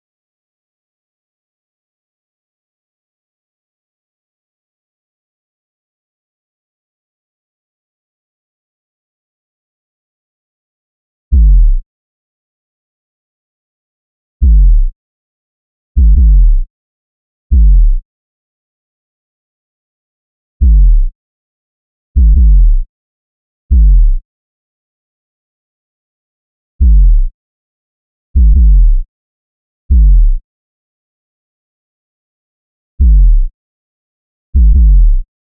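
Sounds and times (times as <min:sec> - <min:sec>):
kick drum beats: 0:11.4 - 0:11.8, 0:14.4 - 0:14.9, 0:16.0 - 0:16.6, 0:17.5 - 0:18.0, 0:20.6 - 0:21.1, 0:22.2 - 0:22.8, 0:23.7 - 0:24.2, 0:26.8 - 0:27.3, 0:28.4 - 0:29.0, 0:29.9 - 0:30.4, 0:33.0 - 0:33.5, 0:34.6 - 0:35.2.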